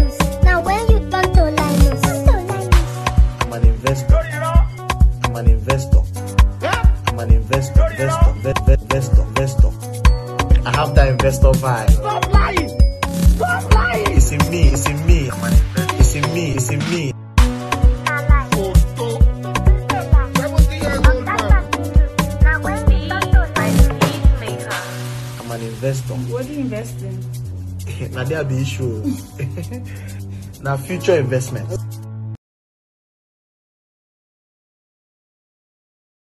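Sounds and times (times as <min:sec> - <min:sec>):
music beat: 0:00.0 - 0:28.3.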